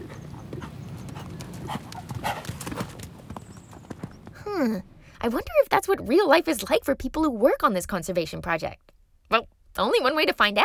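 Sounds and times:
horse hooves clip-clopping: 0.0s - 5.0s
speech: 4.6s - 10.6s.

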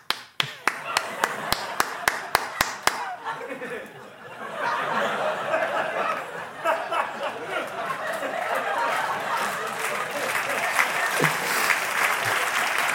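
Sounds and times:
hand claps: 0.0s - 3.1s, 8.9s - 12.9s
crowd applause: 0.4s - 12.9s
laughter: 0.6s - 12.9s
murmuring voices: 9.4s - 12.8s.

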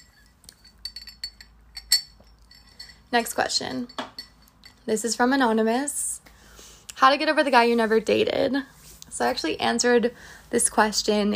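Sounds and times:
ceramic coffee mug clinking: 0.0s - 4.9s
speech: 3.1s - 4.0s, 4.8s - 6.0s, 7.0s - 11.3s.

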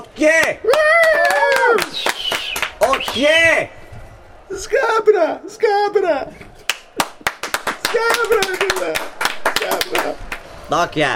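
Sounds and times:
speech: 0.2s - 1.1s, 2.9s - 3.8s, 4.5s - 6.5s, 8.0s - 11.1s
audience clapping: 0.3s - 3.3s, 6.7s - 10.6s.

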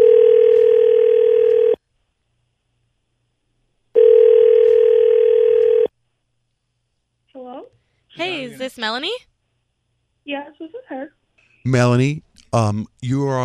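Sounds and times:
telephone ringback tone while a call is placed: 0.0s - 1.8s, 4.0s - 5.9s
speech: 8.7s - 9.3s, 10.3s - 13.4s.

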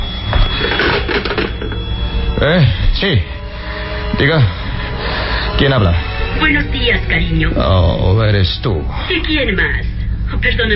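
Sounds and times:
old telephone bell ringing: 0.0s - 3.4s
speech: 2.4s - 3.4s, 4.2s - 4.6s, 5.6s - 10.7s.

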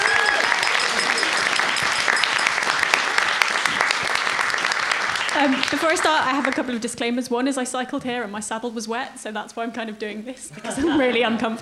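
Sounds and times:
audience applause: 0.0s - 6.7s
speech: 5.4s - 11.5s
laughter: 10.5s - 11.5s.

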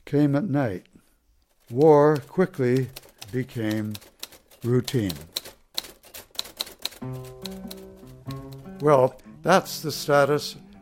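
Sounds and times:
speech: 0.1s - 1.0s, 1.7s - 5.3s, 8.8s - 10.8s
typewriter keystrokes: 1.6s - 9.1s.

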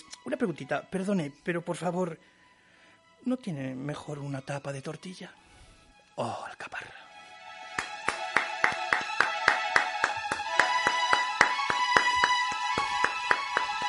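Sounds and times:
speech: 0.2s - 2.4s, 3.2s - 5.4s, 6.2s - 6.9s
rhythmic clapping behind studio glass: 7.5s - 13.8s.

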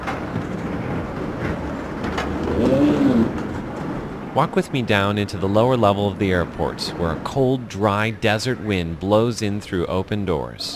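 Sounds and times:
airport ambience: 0.0s - 10.7s
pigeon cooing: 2.4s - 3.4s
speech: 4.4s - 10.7s.

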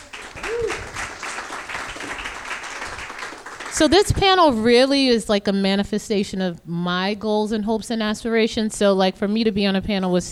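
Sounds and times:
audience applause: 0.0s - 4.4s
rising-and-falling vocal whoop: 0.4s - 1.0s
speech: 3.8s - 10.2s.

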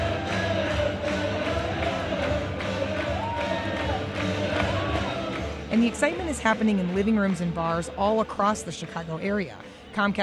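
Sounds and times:
hockey arena crowd cheering: 0.0s - 7.1s
speech: 5.7s - 10.2s.

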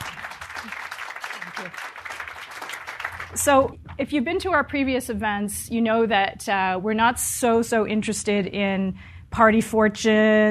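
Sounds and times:
audience applause welcoming a panel at a public event: 0.0s - 3.5s
speech: 1.6s - 1.9s, 3.3s - 10.4s.

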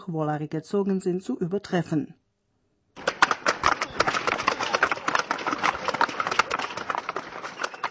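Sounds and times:
speech: 0.0s - 2.2s
wooden clogs clattering on the market square at the Holzfest: 3.0s - 7.8s.

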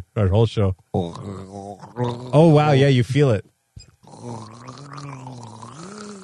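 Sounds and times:
speech: 0.2s - 5.2s
person imitating a whale call while gargling water: 1.0s - 2.6s, 4.0s - 6.2s.

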